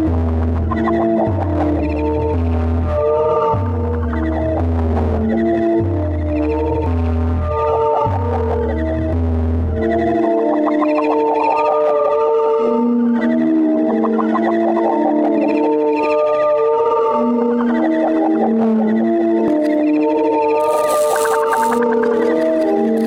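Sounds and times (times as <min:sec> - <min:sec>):
synthesizer: 0:00.0 - 0:23.0
cricket chirping: 0:20.6 - 0:21.9.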